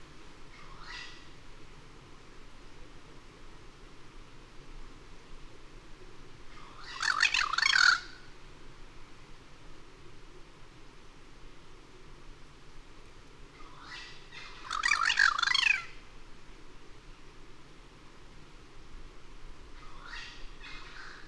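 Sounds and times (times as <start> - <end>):
low constant hiss: 0.0 - 21.2
bird harsh buzzing squawk: 6.7 - 8.2, 13.7 - 16.0, 19.8 - 21.2.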